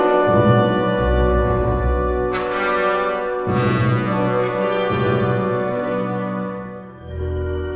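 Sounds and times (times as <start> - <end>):
intro music flourish: 0.2 - 7.6.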